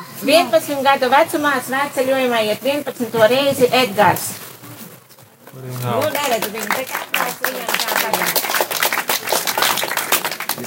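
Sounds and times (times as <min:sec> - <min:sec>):
speech: 0:00.2 - 0:04.4, 0:05.5 - 0:08.6
audience applauding at a pilgrimage gathering: 0:05.8 - 0:10.6.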